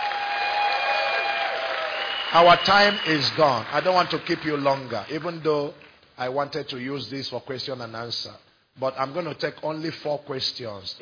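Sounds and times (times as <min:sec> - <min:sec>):
audience clapping: 0:00.0 - 0:06.0
speech: 0:02.3 - 0:11.0.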